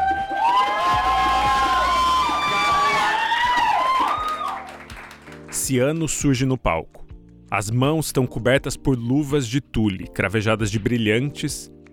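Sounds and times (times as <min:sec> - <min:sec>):
crowd cheering loudly with whoops and shouts: 0:00.0 - 0:04.9
crowd clapping: 0:00.0 - 0:06.2
speech: 0:05.7 - 0:11.8.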